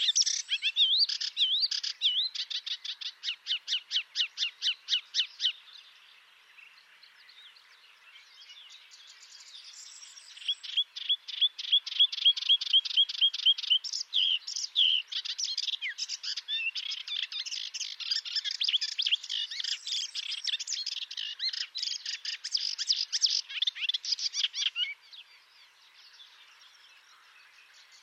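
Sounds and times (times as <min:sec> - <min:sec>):
melodious warbler Hippolais polyglotta singing: 0:00.0 - 0:28.0.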